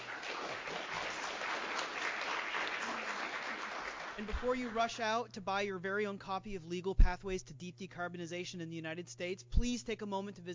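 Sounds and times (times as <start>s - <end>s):
audience applause: 0.0s - 4.8s
speech: 4.2s - 10.5s.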